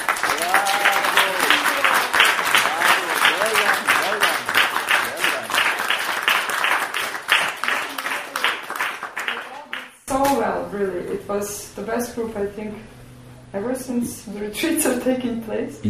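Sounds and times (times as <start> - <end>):
applause for participants: 0.0 - 10.1
speech: 10.8 - 15.8.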